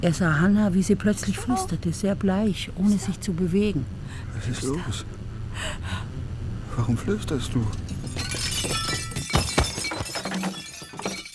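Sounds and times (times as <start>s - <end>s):
speech: 0.0s - 6.0s, 6.8s - 8.8s
glass shattering: 7.7s - 11.3s
tinkling glass shards: 7.8s - 11.3s.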